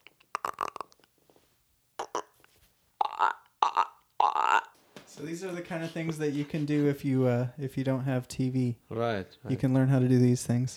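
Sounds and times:
person imitating a frog's croak with their voice: 0.0s - 1.1s, 2.0s - 2.4s, 3.0s - 4.8s
speech: 5.2s - 10.7s.

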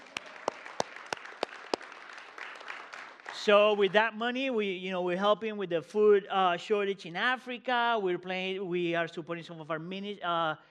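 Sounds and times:
audience clapping: 0.0s - 4.2s
speech: 3.4s - 10.7s.

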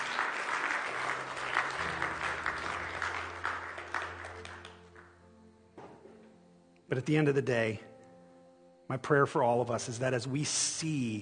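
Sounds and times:
audience clapping: 0.0s - 5.2s
low sustained organ-like tone: 0.0s - 11.2s
speech: 6.9s - 7.9s, 8.9s - 11.2s.

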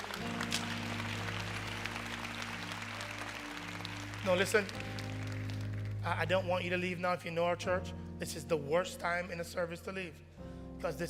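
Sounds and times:
audience applause: 0.0s - 6.1s
speech: 4.2s - 5.0s, 6.0s - 11.0s.

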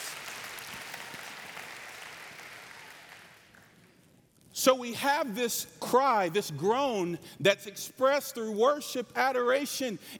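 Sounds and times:
crowd clapping: 0.0s - 4.0s
speech: 4.6s - 10.1s.

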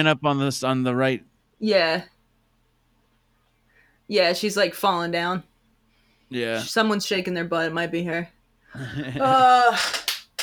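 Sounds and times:
speech: 0.0s - 2.1s, 4.1s - 5.5s, 6.3s - 10.1s
hand clapping: 9.8s - 10.4s.

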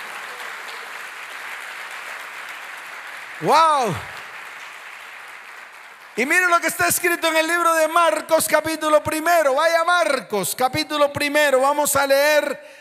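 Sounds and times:
audience applause: 0.0s - 6.7s
speech: 3.4s - 4.1s, 6.2s - 12.7s.

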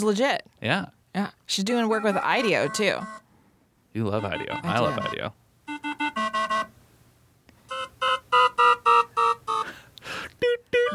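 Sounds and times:
speech: 0.0s - 3.2s, 3.9s - 5.4s
cardiovascular caution alarm beeping: 2.0s - 3.3s, 4.2s - 6.8s, 7.7s - 9.7s.

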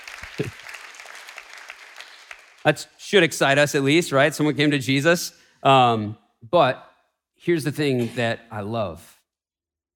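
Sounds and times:
audience applause: 0.0s - 2.8s
speech: 0.4s - 0.7s, 2.6s - 9.1s.

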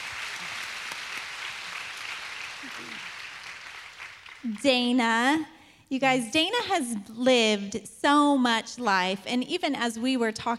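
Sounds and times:
audience applause for a guest at a women's night panel event: 0.0s - 4.6s
speech: 2.6s - 3.2s, 4.4s - 10.5s.

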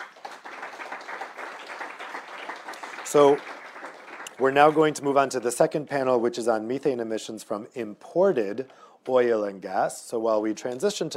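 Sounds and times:
audience applause: 0.0s - 5.1s
speech: 3.1s - 3.5s, 4.4s - 11.1s.

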